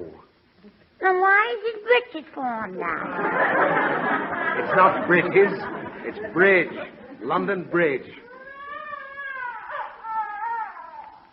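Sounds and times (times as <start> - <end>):
speech: 1.1 - 8.2
laughter: 3.0 - 8.0
child crying: 8.3 - 11.3.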